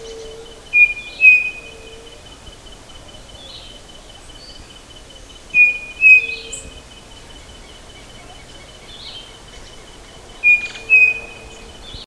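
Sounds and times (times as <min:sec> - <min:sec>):
bird calling with paired high whistled notes: 0:00.0 - 0:02.2, 0:05.6 - 0:06.8, 0:10.4 - 0:12.0
faint other chirps: 0:00.0 - 0:12.0
steady background hiss: 0:00.0 - 0:12.0.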